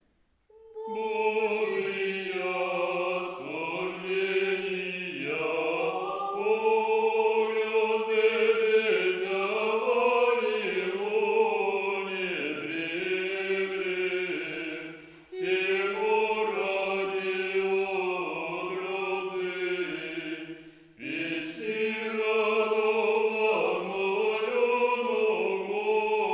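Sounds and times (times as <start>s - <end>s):
irmos hymns chanted in tone 8, ode 7: 0.5s - 26.3s.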